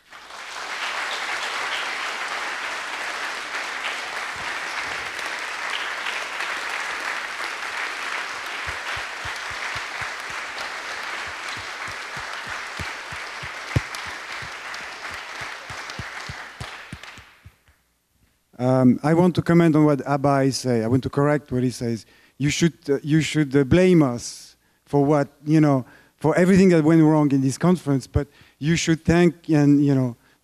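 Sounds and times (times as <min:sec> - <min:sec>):
audience applause: 0:00.0 - 0:17.4
speech: 0:18.8 - 0:30.2.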